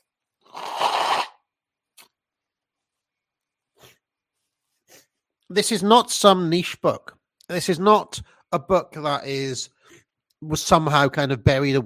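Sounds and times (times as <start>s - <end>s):
nose blowing: 0.4s - 1.5s
speech: 5.5s - 11.8s.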